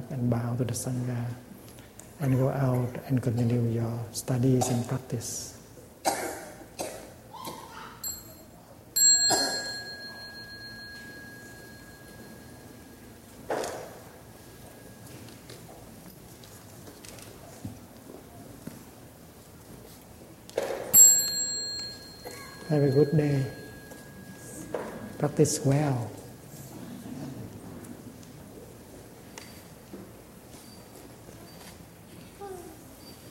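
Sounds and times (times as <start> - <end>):
speech: 0.2 - 1.5, 2.2 - 6.2, 25.4 - 26.2
person coughing: 4.6 - 5.0, 6.0 - 7.7, 9.3 - 9.7, 22.2 - 22.7
small meditation bell ringing at the close of a session: 8.0 - 13.2, 21.0 - 26.4.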